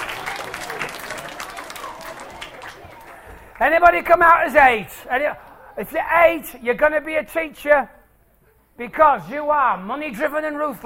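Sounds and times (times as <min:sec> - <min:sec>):
audience applause: 0:00.0 - 0:04.2
speech: 0:03.6 - 0:08.0, 0:08.8 - 0:10.8.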